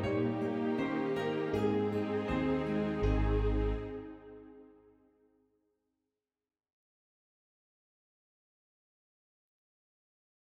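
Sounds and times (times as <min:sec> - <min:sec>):
ensemble playing together in concert in A flat: 0:00.0 - 0:04.8.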